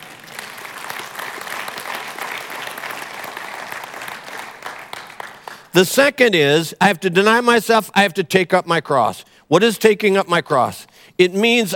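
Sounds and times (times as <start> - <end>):
audience clapping: 0.0 - 5.8
speech: 5.8 - 11.7.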